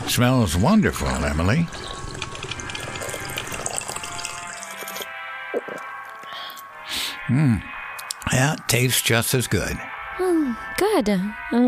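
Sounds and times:
speech: 0.1 - 2.0, 7.3 - 7.7, 8.3 - 11.6
coffee gurgling and bubbling: 0.4 - 5.1.

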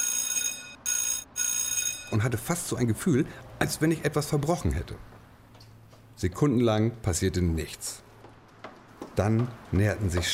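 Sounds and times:
doorbell ringing: 0.0 - 2.3
speech: 2.1 - 5.1, 6.2 - 8.1, 9.2 - 10.3.

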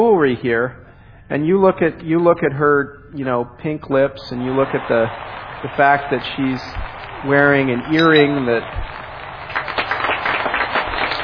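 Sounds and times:
speech: 0.0 - 9.0
crowd clapping: 4.4 - 11.2.

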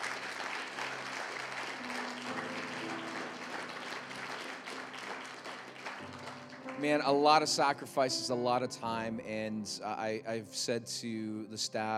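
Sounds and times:
audience applause: 0.0 - 7.3
speech: 6.8 - 11.9.

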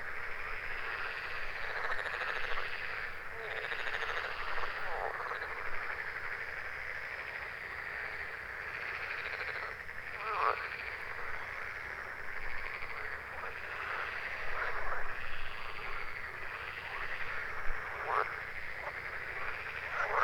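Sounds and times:
frog chorus croaking in Götzerberge in summer: 0.0 - 20.2.

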